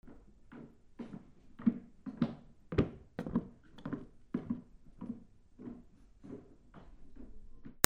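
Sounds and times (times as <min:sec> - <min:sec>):
footsteps: 0:01.0 - 0:06.9.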